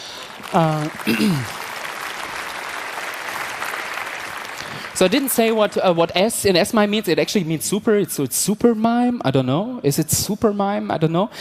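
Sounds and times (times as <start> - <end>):
audience applause: 0.0 - 6.6
speech: 0.5 - 1.6, 5.0 - 11.4.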